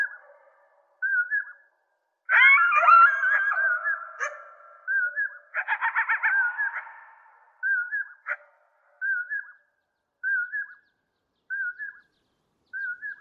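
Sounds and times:
rapid stuttering bird trill: 0.0s - 1.6s, 2.3s - 9.6s, 10.2s - 13.1s
short mid-pitched whistled bird calls: 1.0s - 1.6s, 3.6s - 5.5s, 7.6s - 8.4s, 9.0s - 9.6s, 10.2s - 13.1s.

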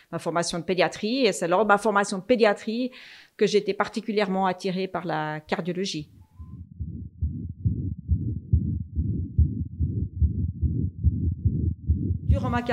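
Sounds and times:
speech: 0.1s - 6.2s, 12.5s - 12.7s
heartbeat heard through a stethoscope: 6.4s - 12.7s.

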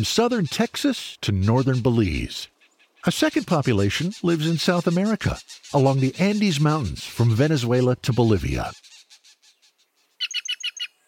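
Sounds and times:
speech: 0.0s - 8.9s
Green Jay calls: 0.0s - 9.2s.

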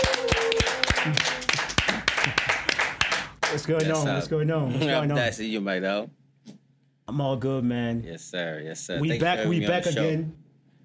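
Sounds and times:
audience applause welcoming a guest: 0.0s - 3.8s
speech: 1.0s - 1.3s, 3.5s - 6.2s, 7.1s - 10.4s.

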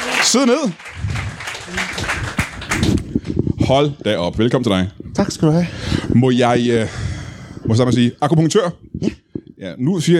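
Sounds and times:
audience applause on a live Danish comedy talk show: 0.0s - 3.4s
speech: 0.2s - 1.0s, 1.7s - 2.4s, 3.7s - 7.0s, 7.6s - 10.1s.

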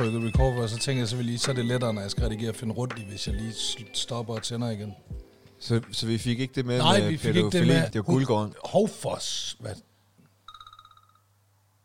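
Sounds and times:
speech: 0.0s - 9.9s
telephone ringing with electronic trill: 10.5s - 11.3s.

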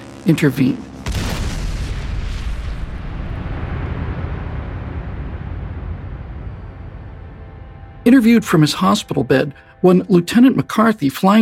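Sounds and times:
speech: 0.2s - 0.9s, 8.2s - 11.3s
mid-air explosion of a bomber plane: 1.0s - 8.1s.

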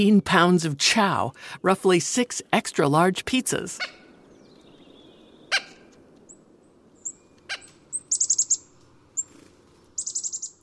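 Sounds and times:
speech: 0.0s - 4.0s
chickadee calls: 3.7s - 6.4s, 7.0s - 9.4s, 10.0s - 10.6s.

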